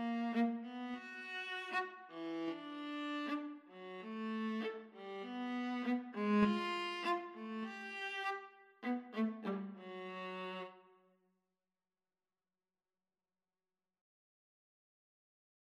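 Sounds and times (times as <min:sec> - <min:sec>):
viola: 0:00.0 - 0:10.8.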